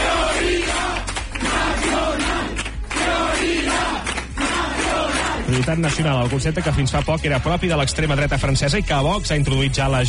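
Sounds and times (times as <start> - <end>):
crowd chanting at party headquarters: 0.0 - 5.6
speech: 5.6 - 10.0.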